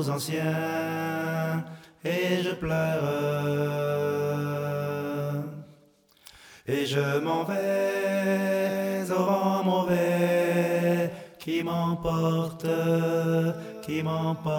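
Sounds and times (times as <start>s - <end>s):
alto voice singing chorale: 0.0s - 5.8s, 6.7s - 14.5s.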